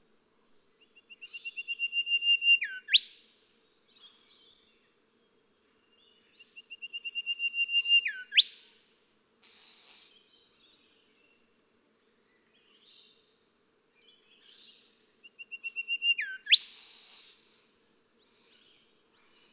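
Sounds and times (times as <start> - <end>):
golden whistler singing: 1.3 - 3.1, 6.8 - 8.6, 15.4 - 16.7.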